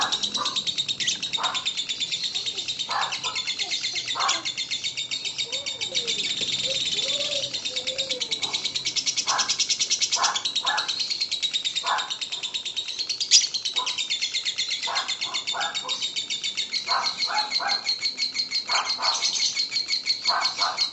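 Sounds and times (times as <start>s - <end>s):
lovebird singing a shrill rattling ngekek song: 0.0s - 20.9s.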